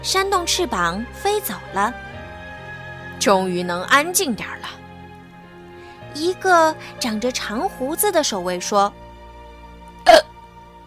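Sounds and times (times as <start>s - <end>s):
speech: 0.0s - 2.0s, 3.2s - 4.8s, 6.1s - 9.0s
hiccup sound effect: 10.0s - 10.3s.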